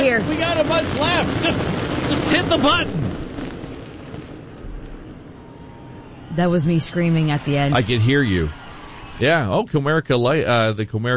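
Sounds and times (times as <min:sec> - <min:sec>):
fireworks finale explosions: 0:00.0 - 0:09.5
speech: 0:00.2 - 0:03.2, 0:06.3 - 0:08.6, 0:09.2 - 0:11.1.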